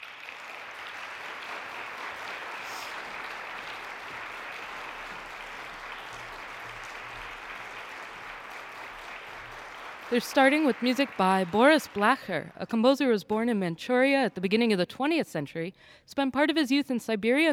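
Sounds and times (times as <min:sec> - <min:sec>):
audience applause welcoming a trombone, trumpet and piano trio to the stage: 0:00.0 - 0:12.6
speech: 0:10.1 - 0:17.5.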